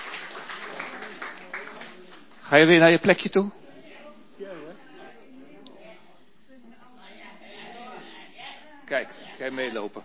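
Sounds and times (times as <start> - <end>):
group applause: 0.0 - 2.5
speech: 2.5 - 3.6, 8.9 - 10.0.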